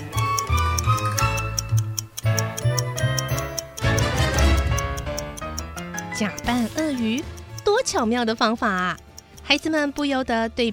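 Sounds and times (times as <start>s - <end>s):
clock ticking: 0.0s - 10.7s
speech: 6.2s - 10.7s.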